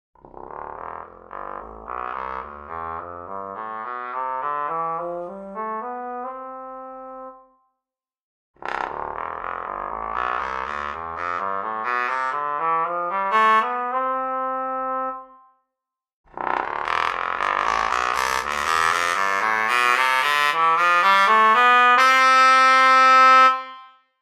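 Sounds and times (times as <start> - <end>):
bass trombone with straight mute: 0.2 - 7.4, 8.6 - 15.4, 16.4 - 23.8.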